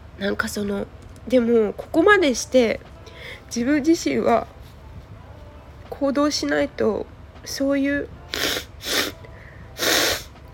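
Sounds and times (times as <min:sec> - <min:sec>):
speech: 0:00.2 - 0:04.6, 0:06.0 - 0:08.6
person blowing nose: 0:08.3 - 0:09.2, 0:09.8 - 0:10.3.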